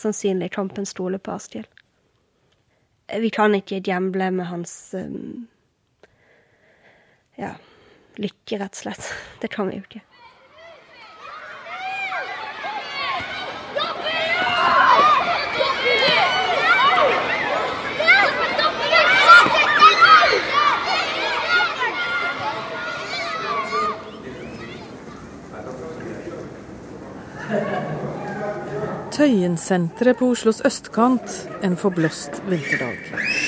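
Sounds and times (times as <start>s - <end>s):
speech: 0.0s - 1.8s, 3.1s - 5.5s, 7.4s - 10.1s, 29.2s - 33.4s
crowd chatter in a shopping centre underpass: 10.2s - 33.4s
laughter: 12.0s - 33.2s.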